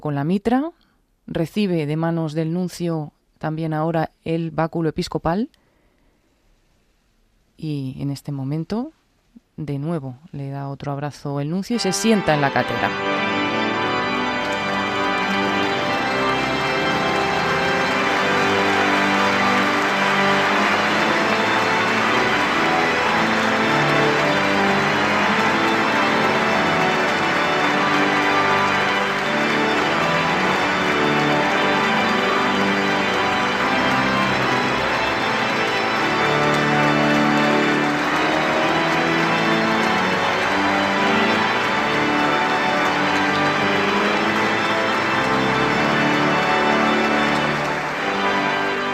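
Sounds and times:
speech: 0:00.0 - 0:05.6, 0:07.6 - 0:09.0, 0:09.6 - 0:13.3
audience applause: 0:11.8 - 0:48.9
organ playing sustained chords: 0:11.8 - 0:48.9.

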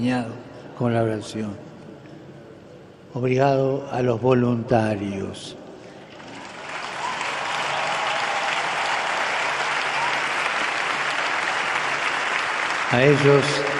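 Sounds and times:
speech: 0:00.0 - 0:01.7, 0:03.1 - 0:05.6, 0:12.9 - 0:13.7
crowd applause: 0:06.1 - 0:13.7.

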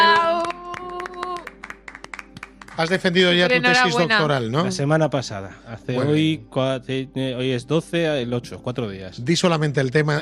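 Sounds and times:
hand claps from a small group: 0:00.0 - 0:03.4
speech: 0:02.8 - 0:10.2.

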